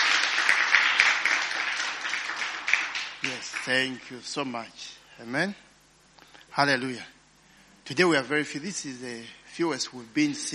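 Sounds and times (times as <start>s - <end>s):
audience applause for worship team: 0.0s - 4.1s
speech: 3.6s - 5.7s, 6.6s - 7.2s, 7.9s - 10.5s.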